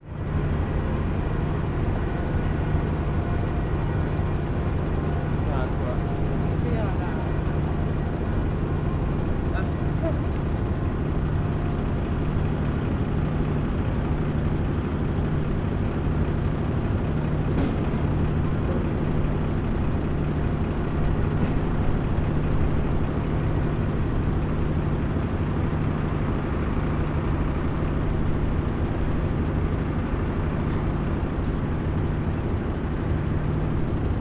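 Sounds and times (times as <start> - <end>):
motor boat: 0.0 - 34.1.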